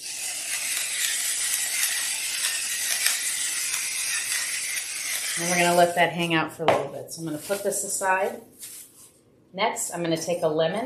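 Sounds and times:
grinding sea salt and black pepper: 0.0 - 6.1
speech: 5.4 - 8.7, 9.5 - 10.8.

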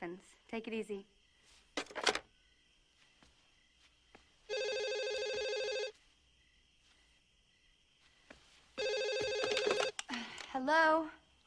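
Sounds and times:
speech: 0.1 - 1.2, 10.7 - 11.2
telephone ringing: 4.5 - 6.0, 8.8 - 10.0.

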